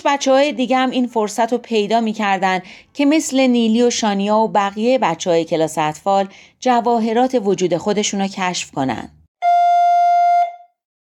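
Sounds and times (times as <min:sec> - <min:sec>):
speech: 0:00.0 - 0:09.2
doorbell ringing: 0:09.4 - 0:10.7.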